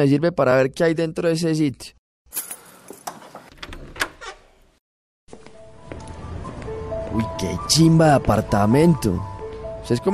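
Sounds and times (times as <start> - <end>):
speech: 0.0 - 2.6, 7.1 - 9.3, 9.9 - 10.1
keys jangling and clinking: 2.3 - 3.2.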